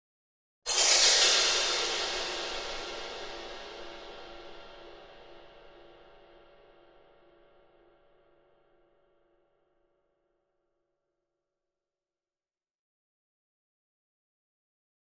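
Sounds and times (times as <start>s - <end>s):
drum kit cymbal accent: 0.7s - 6.7s.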